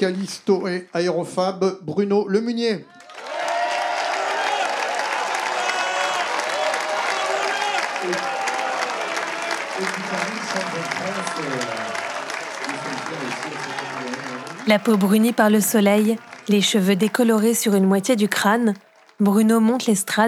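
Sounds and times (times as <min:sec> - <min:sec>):
speech: 0:00.0 - 0:03.0, 0:08.0 - 0:08.3, 0:09.8 - 0:12.1, 0:12.8 - 0:20.2
scattered cheers and voices: 0:02.8 - 0:17.9
crowd applauding: 0:02.8 - 0:20.2.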